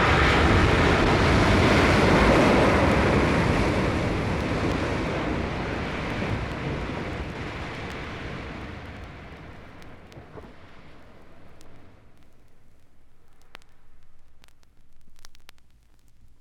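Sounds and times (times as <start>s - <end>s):
surf: 0.0s - 12.2s.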